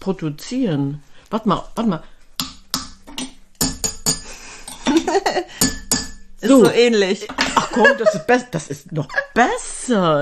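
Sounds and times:
speech: 0:00.0 - 0:02.1, 0:06.4 - 0:10.2
coffee cups clinked together: 0:03.1 - 0:07.8
laughter: 0:04.9 - 0:05.5, 0:07.4 - 0:09.4.

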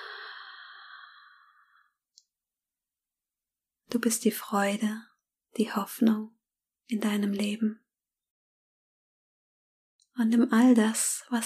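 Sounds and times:
long deep breath out during a guided breathing exercise: 0:00.0 - 0:01.9
speech: 0:03.9 - 0:07.8, 0:10.2 - 0:11.4.

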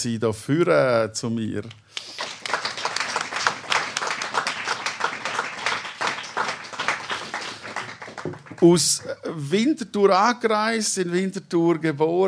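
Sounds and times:
speech: 0:00.0 - 0:02.2, 0:08.6 - 0:12.2
audience applause: 0:02.0 - 0:08.9.

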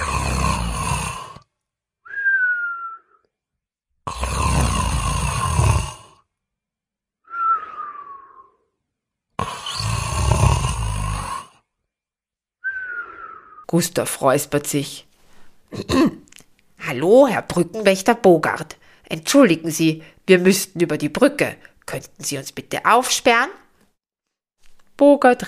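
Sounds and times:
loud snoring of a sleeping gnome: 0:00.0 - 0:01.5, 0:04.0 - 0:06.3, 0:09.4 - 0:11.6
speech: 0:04.1 - 0:04.4, 0:13.7 - 0:15.1, 0:15.7 - 0:16.2, 0:16.8 - 0:23.6, 0:25.0 - 0:25.4.

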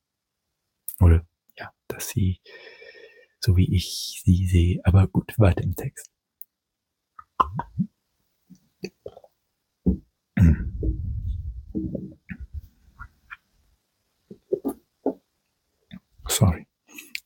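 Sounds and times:
speech: 0:02.0 - 0:02.7, 0:03.4 - 0:06.1
person gulping while drinking: 0:07.2 - 0:07.9, 0:08.8 - 0:13.1.

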